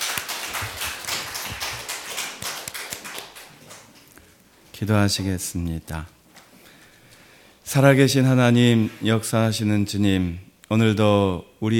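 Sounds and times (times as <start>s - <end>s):
audience applause: 0.0s - 3.9s
speech: 4.8s - 6.2s, 7.7s - 11.7s.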